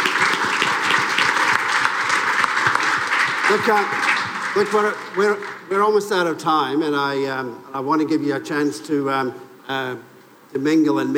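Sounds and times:
crowd applauding: 0:00.0 - 0:06.3
speech: 0:03.5 - 0:11.1.

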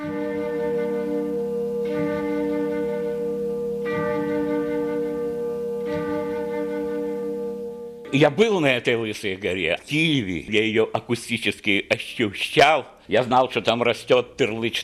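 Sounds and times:
monastery church bells chiming: 0:00.0 - 0:09.1
speech: 0:08.1 - 0:14.8.

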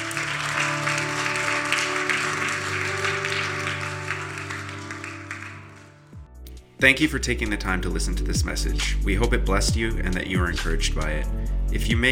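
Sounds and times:
crowd clapping: 0:00.0 - 0:06.2
speech: 0:06.8 - 0:12.1.

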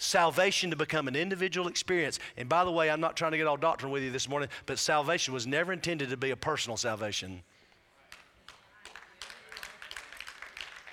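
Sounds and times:
speech: 0:00.1 - 0:07.6
a few hand claps from the audience: 0:08.1 - 0:10.9.

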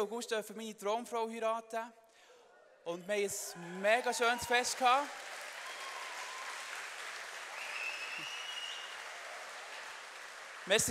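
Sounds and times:
speech: 0:00.0 - 0:02.0, 0:02.8 - 0:05.4, 0:10.7 - 0:10.8
applause: 0:03.6 - 0:10.8.

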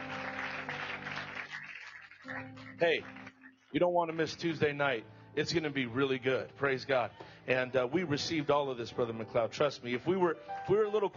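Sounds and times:
audience hand clapping: 0:00.0 - 0:03.7
speech: 0:02.4 - 0:11.1.

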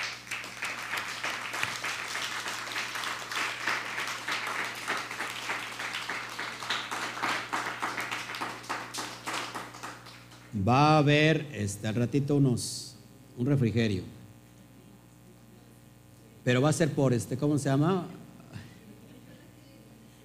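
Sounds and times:
birthday applause: 0:00.0 - 0:10.6
speech: 0:10.6 - 0:12.8, 0:13.4 - 0:14.2, 0:16.4 - 0:18.2.

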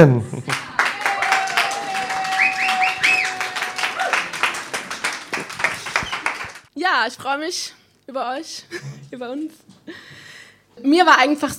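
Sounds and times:
speech: 0:00.0 - 0:00.6, 0:06.9 - 0:10.2, 0:10.8 - 0:11.5
audience applause: 0:00.5 - 0:06.7.

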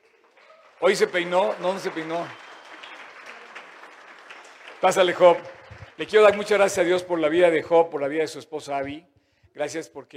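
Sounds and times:
audience applause: 0:00.0 - 0:07.1
speech: 0:00.8 - 0:02.4, 0:04.8 - 0:10.1.

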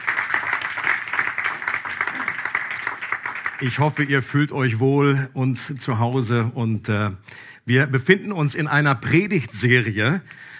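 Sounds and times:
audience applause for guests: 0:00.0 - 0:04.2
speech: 0:03.6 - 0:10.5.

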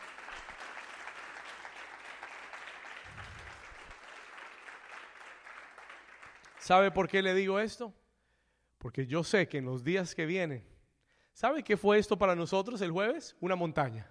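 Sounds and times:
audience applause: 0:00.0 - 0:06.9
speech: 0:06.7 - 0:08.0, 0:08.8 - 0:10.7, 0:11.4 - 0:14.0.

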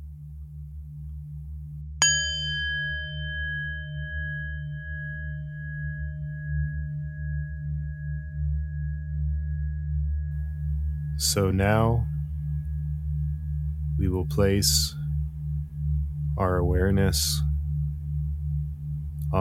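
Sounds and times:
meditation bell ringing: 0:02.0 - 0:19.4
speech: 0:11.2 - 0:12.1, 0:14.1 - 0:15.0, 0:16.4 - 0:17.5.

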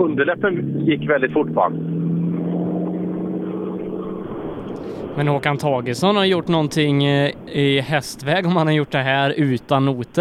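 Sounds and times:
speech: 0:00.0 - 0:02.0, 0:05.2 - 0:10.1
engine rumble inside a moving car: 0:00.0 - 0:10.1.

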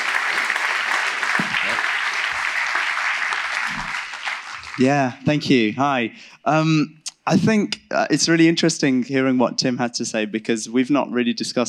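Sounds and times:
crowd clapping for a man invited to speak on a psalm: 0:00.0 - 0:05.2
speech: 0:04.8 - 0:11.6.

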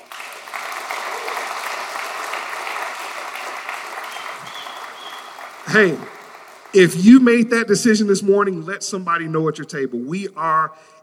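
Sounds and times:
audience clapping: 0:00.0 - 0:08.0
speech: 0:05.7 - 0:06.1, 0:06.7 - 0:11.0.

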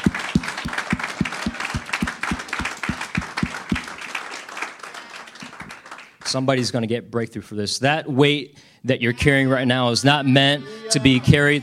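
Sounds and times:
audience applause: 0:00.0 - 0:06.4
speech: 0:06.3 - 0:11.6.

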